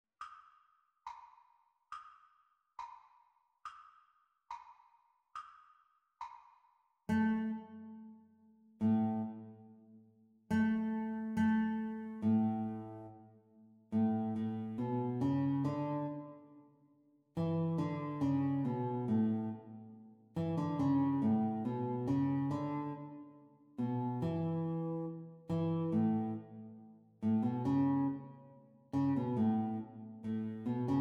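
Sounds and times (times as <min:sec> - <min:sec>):
guitar duet playalong practice: 0:07.1 - 0:08.1, 0:08.8 - 0:09.6, 0:10.5 - 0:13.2, 0:13.9 - 0:16.5, 0:17.4 - 0:19.8, 0:20.4 - 0:30.9.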